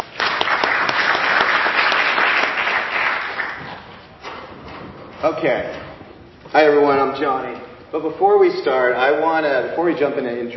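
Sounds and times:
audience applause: 0:00.0 - 0:03.9
speech: 0:05.2 - 0:05.8, 0:06.5 - 0:10.5.

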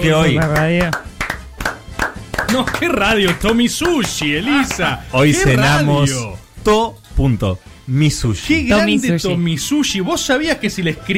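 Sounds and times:
speech: 0:00.0 - 0:01.0, 0:02.5 - 0:11.1
applause: 0:00.2 - 0:05.0
laughter: 0:02.4 - 0:03.5.

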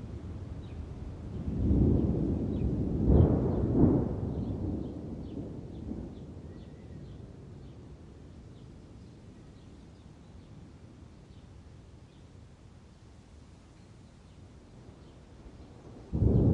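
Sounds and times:
thunder rumbling: 0:01.3 - 0:06.5, 0:16.0 - 0:16.5.

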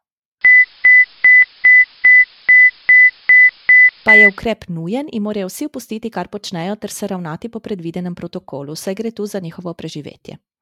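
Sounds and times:
space station emergency alarm tone: 0:00.4 - 0:04.4
speech: 0:04.0 - 0:10.5.

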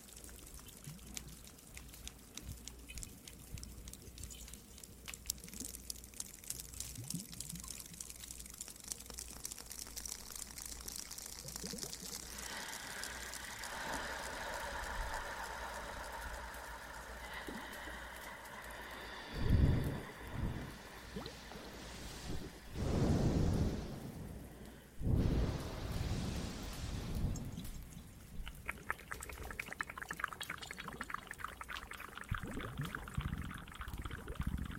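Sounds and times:
fire crackling in a cave: 0:00.0 - 0:34.7
water dripping in a cave: 0:00.0 - 0:34.7
rushing hiss: 0:12.2 - 0:27.9.

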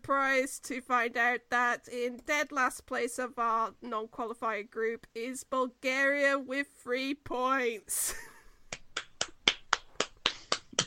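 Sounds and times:
speech: 0:00.1 - 0:08.3
round of applause: 0:09.0 - 0:10.8.

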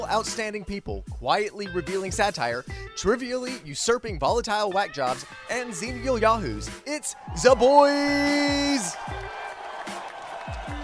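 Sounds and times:
speech: 0:00.0 - 0:09.4
crowd applauding: 0:07.0 - 0:10.8
crowd whoops: 0:07.1 - 0:10.8.

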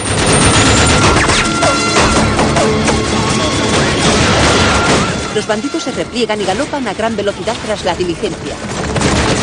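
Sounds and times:
rifle and machine-gun fire in a western shootout: 0:00.0 - 0:05.2, 0:07.5 - 0:09.4
speech: 0:05.4 - 0:09.0.

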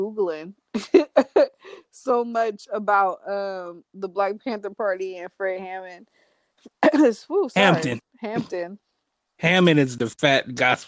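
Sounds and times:
speech: 0:00.0 - 0:08.8, 0:09.4 - 0:10.8
person clearing something caught in their throat: 0:07.6 - 0:08.5.

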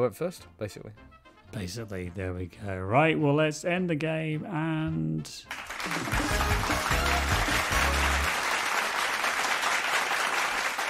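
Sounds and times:
speech: 0:00.0 - 0:08.2
audience applause: 0:05.5 - 0:10.8.

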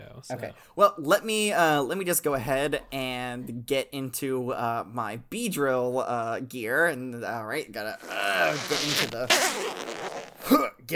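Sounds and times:
speech: 0:00.2 - 0:10.9
Spinarak weave vest zipper being zipped up: 0:08.0 - 0:10.4.

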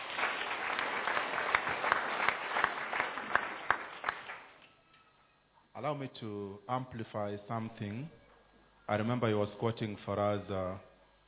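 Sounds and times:
audience clapping: 0:00.0 - 0:04.7
speech: 0:05.8 - 0:08.2, 0:08.9 - 0:10.9.

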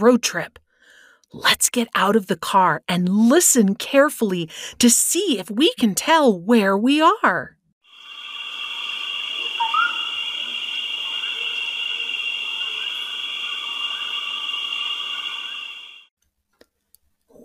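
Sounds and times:
speech: 0:00.0 - 0:00.6, 0:01.3 - 0:07.6
high-pitched drone of insects and frogs in a jungle: 0:07.8 - 0:16.1
chirping animal calls: 0:09.4 - 0:11.8.

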